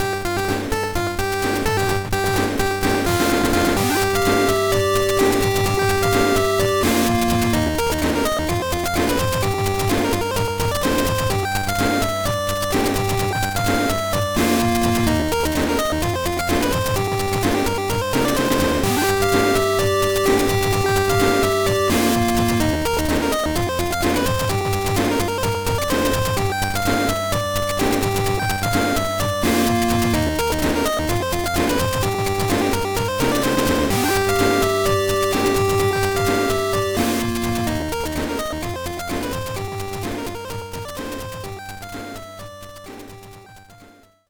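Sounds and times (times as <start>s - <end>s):
background music: 0.0s - 44.2s.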